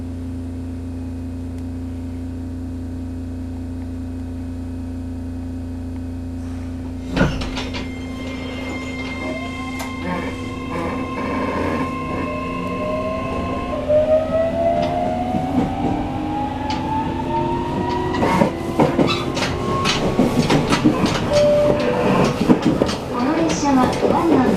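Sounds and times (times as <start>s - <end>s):
303 series train running: 0.0s - 24.5s
rattling clatter: 7.0s - 12.4s, 17.9s - 24.5s.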